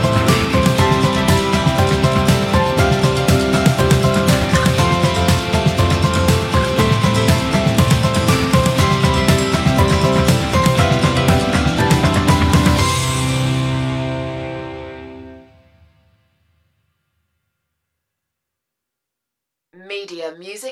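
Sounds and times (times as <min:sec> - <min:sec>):
instrumental music: 0:00.0 - 0:15.6.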